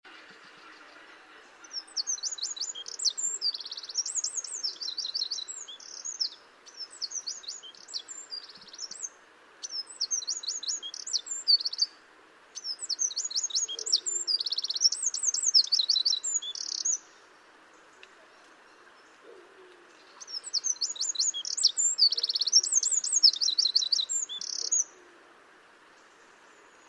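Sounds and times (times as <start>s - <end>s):
background hiss: 0.1s - 26.8s
Eurasian wren singing trills: 1.6s - 11.9s, 12.6s - 17.0s, 20.2s - 24.9s.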